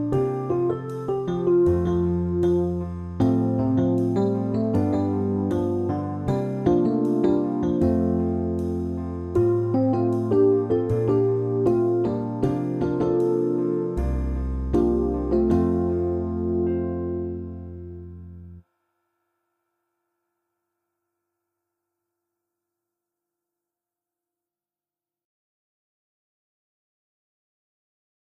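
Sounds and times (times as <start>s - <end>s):
piano piece: 0.0s - 18.6s.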